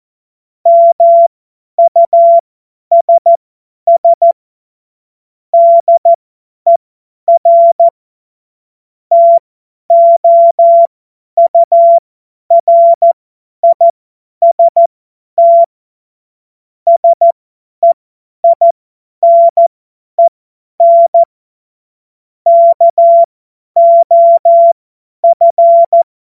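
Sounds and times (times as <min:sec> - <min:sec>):
CW Morse code beeps: 0:00.7 - 0:04.4, 0:05.6 - 0:07.9, 0:09.1 - 0:15.7, 0:16.9 - 0:21.3, 0:22.5 - 0:26.0.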